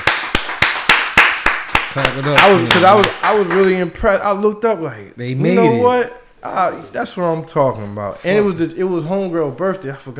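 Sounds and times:
hand clapping: 0.0 - 3.8
speech: 2.0 - 10.1.

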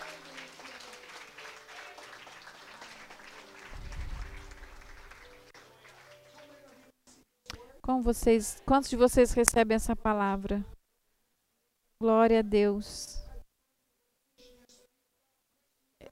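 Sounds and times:
audience applause: 0.0 - 6.9
speech: 7.9 - 10.7, 12.0 - 13.2.

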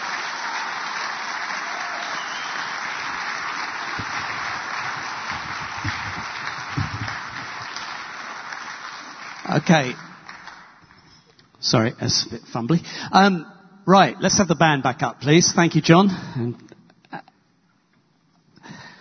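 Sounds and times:
audience clapping: 0.0 - 11.2
speech: 9.6 - 10.0, 11.6 - 16.7.

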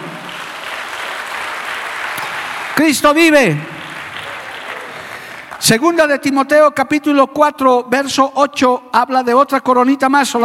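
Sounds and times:
audience applause: 0.0 - 5.8
speech: 2.8 - 3.7, 5.6 - 10.4.

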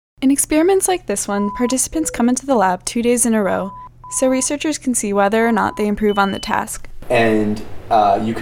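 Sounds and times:
speech: 0.2 - 8.4
two test tones of different pitch: 1.3 - 2.3, 3.7 - 4.5.

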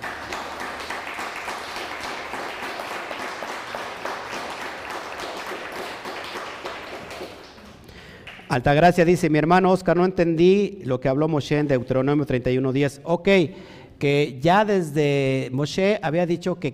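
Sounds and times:
audience applause: 0.0 - 8.5
speech: 8.5 - 16.7.

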